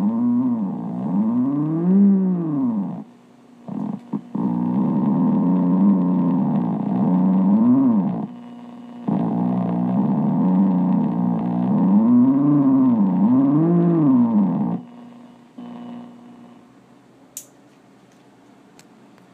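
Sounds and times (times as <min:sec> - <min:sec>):
B3 theremin tone: 0:00.0 - 0:03.0, 0:03.7 - 0:08.3, 0:09.1 - 0:14.9.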